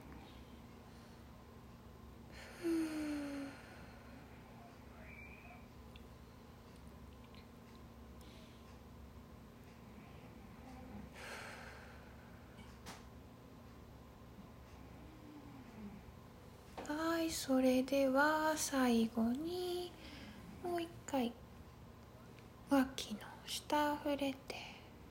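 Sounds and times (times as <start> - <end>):
deep breathing during a self-care exercise: 2.3 - 4.6, 9.9 - 12.7, 20.0 - 20.6
speech: 17.4 - 20.0, 20.8 - 21.3, 23.0 - 24.6.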